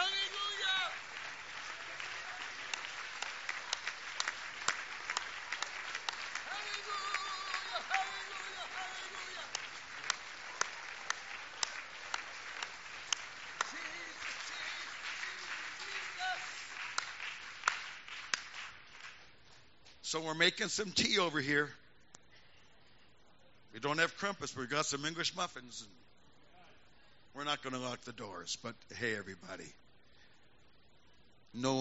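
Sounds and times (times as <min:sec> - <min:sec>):
audience clapping: 0:00.0 - 0:19.6
speech: 0:20.1 - 0:21.8, 0:23.8 - 0:26.0, 0:27.4 - 0:29.8, 0:31.5 - 0:31.7.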